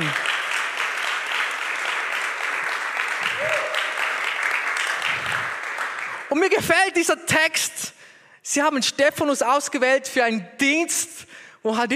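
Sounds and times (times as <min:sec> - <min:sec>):
audience applause: 0:00.0 - 0:06.3
speech: 0:06.4 - 0:11.9.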